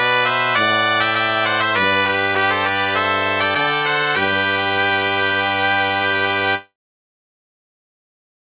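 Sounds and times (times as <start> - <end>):
fanfare: 0.0 - 6.7.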